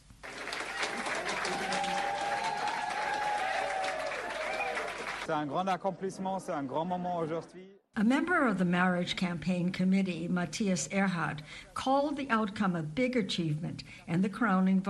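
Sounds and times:
campaign supporters applauding: 0.0 - 5.3
speech: 5.3 - 14.8.

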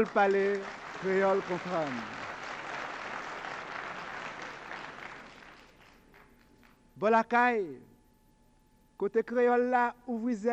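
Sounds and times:
speech: 0.0 - 2.2, 7.0 - 7.9, 9.0 - 10.5
audience applause: 0.0 - 6.4.

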